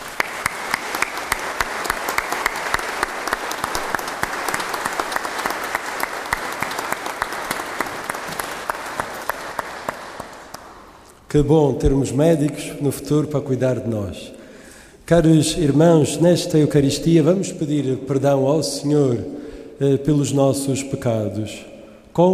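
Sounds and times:
audience applause in church: 0:00.0 - 0:11.0
speech: 0:11.3 - 0:14.4, 0:15.1 - 0:22.3.

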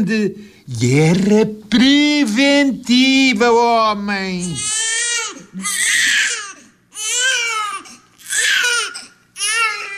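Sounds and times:
speech: 0:00.0 - 0:04.8, 0:05.5 - 0:06.0
newborn baby crying: 0:04.4 - 0:09.9.

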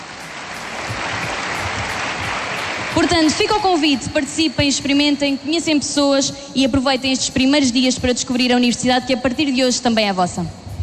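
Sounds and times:
audience applause for a DJ at a university sunset event: 0:00.0 - 0:03.6
speech: 0:03.0 - 0:10.6.

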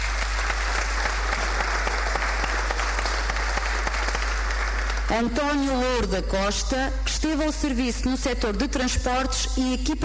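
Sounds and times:
crowd applause for an honoree: 0:00.0 - 0:05.1
speech: 0:05.1 - 0:10.0.

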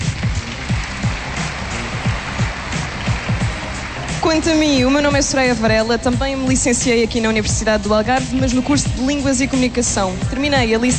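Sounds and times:
audience applause: 0:00.0 - 0:05.0
speech: 0:04.2 - 0:10.9.

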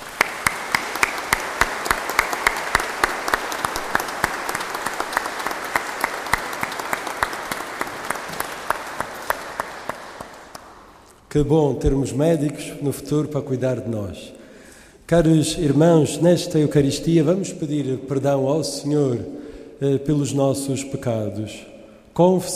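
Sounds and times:
audience applause in church: 0:00.0 - 0:11.0
speech: 0:11.3 - 0:14.4, 0:15.1 - 0:22.5.

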